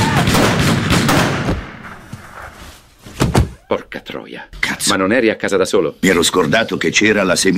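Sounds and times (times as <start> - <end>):
guns fired in a rapid burst: 0.0 - 1.8
speech: 3.7 - 7.5.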